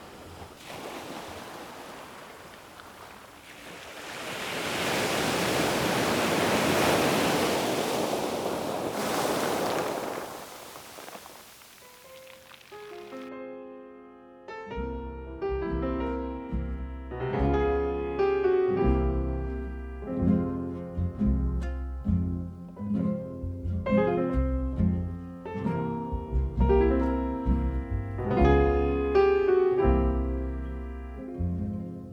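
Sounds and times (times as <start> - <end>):
sea waves breaking on the shore: 0.0 - 13.3
soft melodic music: 11.8 - 32.1.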